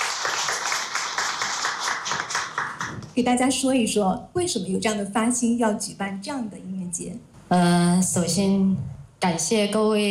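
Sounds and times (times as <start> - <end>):
audience applause: 0.0 - 3.1
speech: 3.2 - 10.0.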